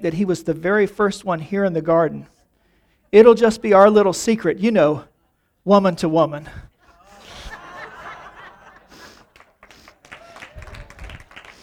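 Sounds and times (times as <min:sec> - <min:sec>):
speech: 0:00.0 - 0:02.4, 0:03.1 - 0:06.7
laughter: 0:06.7 - 0:11.6
women clapping and applauding: 0:08.2 - 0:11.6.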